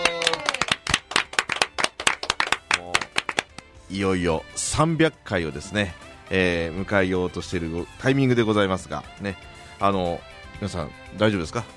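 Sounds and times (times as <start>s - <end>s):
live talk show audience clapping: 0.0s - 3.7s
speech: 3.9s - 11.7s.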